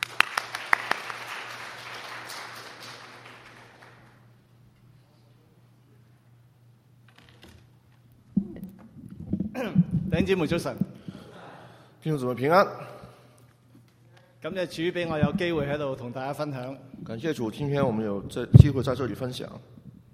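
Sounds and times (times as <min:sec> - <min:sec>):
audience clapping: 0:00.0 - 0:04.4
low steady hum: 0:04.2 - 0:20.1
speech: 0:09.6 - 0:10.9, 0:12.0 - 0:12.9, 0:14.4 - 0:19.7.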